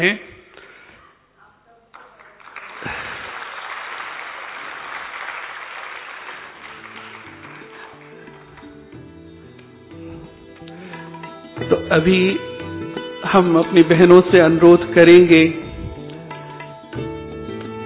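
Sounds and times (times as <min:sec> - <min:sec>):
speech: 0:00.0 - 0:00.3, 0:11.9 - 0:12.5, 0:13.2 - 0:15.6
audience applause: 0:02.0 - 0:08.8.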